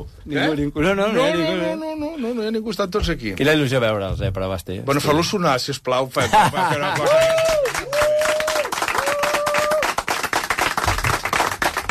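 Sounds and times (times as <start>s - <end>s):
speech: 0.2s - 7.9s
laughter: 6.2s - 7.5s
newsroom staff applauding: 6.7s - 11.8s.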